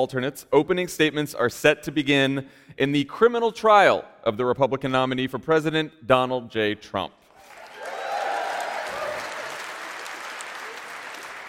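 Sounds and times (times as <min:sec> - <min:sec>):
speech: 0:00.0 - 0:07.2
applause: 0:07.3 - 0:11.4.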